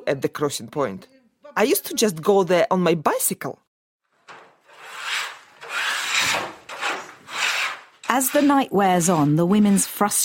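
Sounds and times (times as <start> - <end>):
speech: 0.1 - 3.6, 8.1 - 10.2
baking trays being scraped: 4.3 - 10.2.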